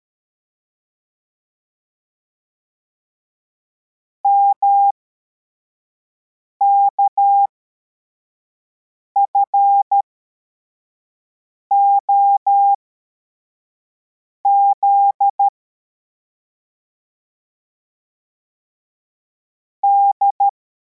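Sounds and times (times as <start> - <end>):
CW morse code beeps: 4.3 - 4.9, 9.2 - 10.0, 11.7 - 12.8, 14.5 - 15.5, 19.8 - 20.5.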